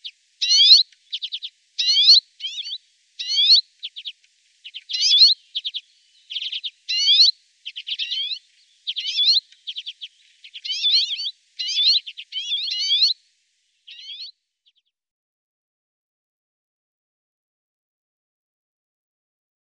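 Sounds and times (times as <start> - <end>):
common redpoll buzzy notes, chattering bursts and trills: 0.0 - 13.2, 13.9 - 14.8.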